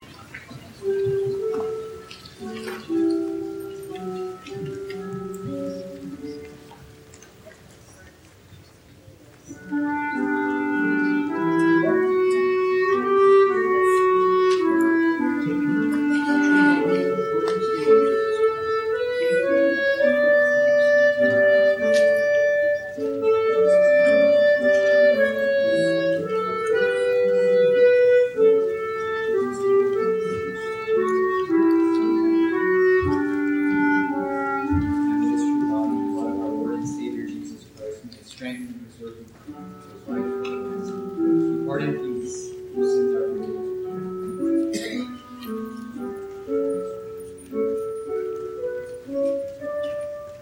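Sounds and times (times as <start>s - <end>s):
clarinet: 0.2s - 8.1s, 9.3s - 38.0s, 39.4s - 50.4s.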